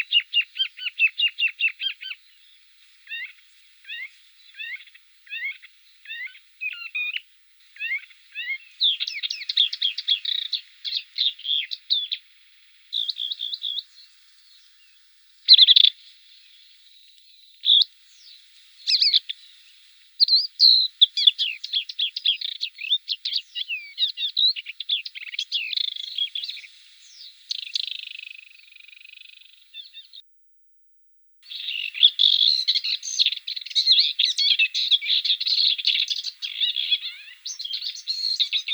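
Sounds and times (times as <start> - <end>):
Blyth's reed warbler song: 0.0 - 2.3, 3.1 - 7.2, 7.8 - 12.3, 12.9 - 16.0, 17.6 - 19.6, 20.2 - 30.2, 31.4 - 38.7.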